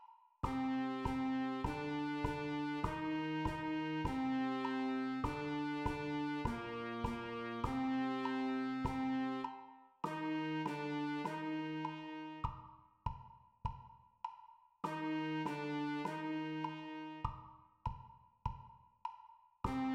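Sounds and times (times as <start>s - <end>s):
school band playing a march: 0.5s - 12.6s, 14.9s - 17.4s, 19.7s - 19.9s.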